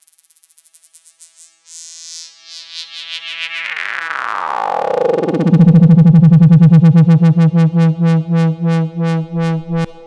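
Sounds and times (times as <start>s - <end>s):
downlifter effect: 5.0s - 10.0s.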